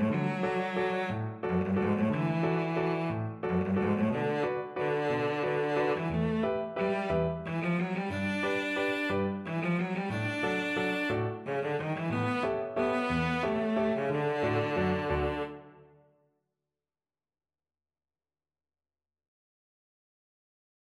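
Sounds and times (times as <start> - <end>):
cello playing wedding dance music: 0.0 - 15.8.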